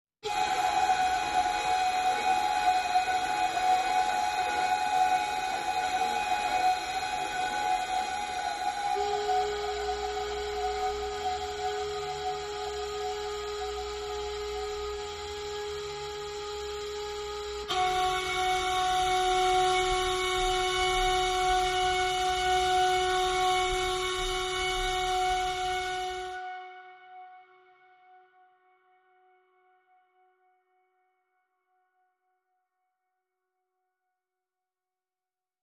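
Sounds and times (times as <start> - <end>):
flutes playing: 0.2 - 28.2.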